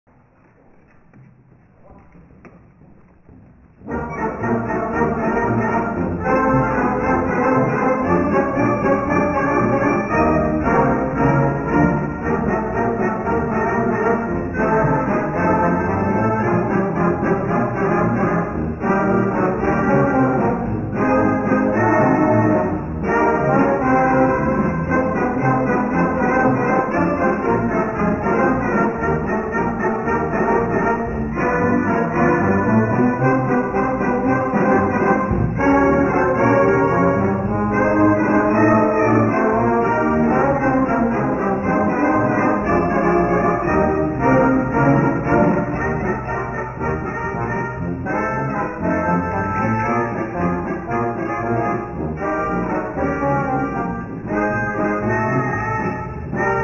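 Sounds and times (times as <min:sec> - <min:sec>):
Dixieland jazz: 0:03.9 - 0:56.6.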